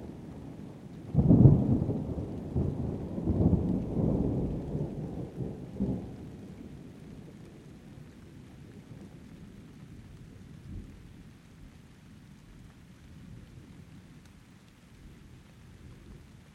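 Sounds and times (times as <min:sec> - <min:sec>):
rain: 0:00.0 - 0:16.5
thunder: 0:01.1 - 0:06.4.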